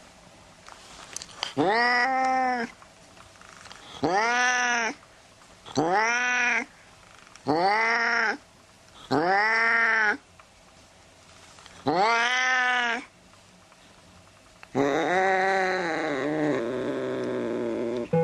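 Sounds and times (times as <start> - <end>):
tomcat meowing loudly: 1.6 - 2.7, 4.0 - 5.0, 5.7 - 6.7, 7.4 - 8.4, 9.1 - 10.2, 11.8 - 13.1, 14.8 - 18.1.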